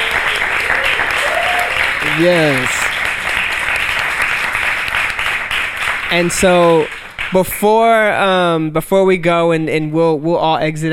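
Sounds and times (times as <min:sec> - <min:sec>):
live audience applause: 0:00.0 - 0:07.4
speech: 0:02.2 - 0:02.8, 0:06.1 - 0:10.9.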